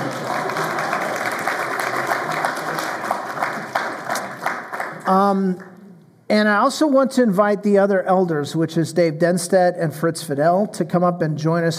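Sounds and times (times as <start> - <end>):
church congregation cheering and applauding: 0.0 - 5.2
speech: 5.1 - 5.7, 6.3 - 11.7.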